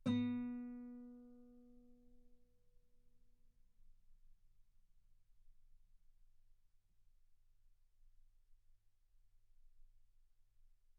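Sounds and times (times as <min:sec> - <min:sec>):
guitar note B3: 0:00.0 - 0:01.3.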